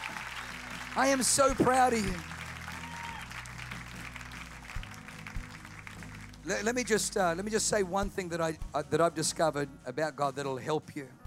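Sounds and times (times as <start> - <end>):
audience applause: 0.0 - 6.7
speech: 1.0 - 2.3, 6.5 - 11.2.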